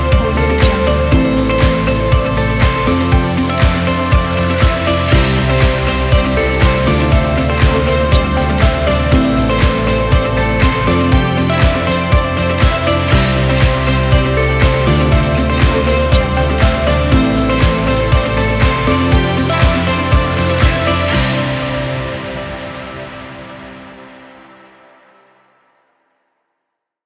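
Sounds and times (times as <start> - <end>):
motivational corporate music: 0.0 - 25.4.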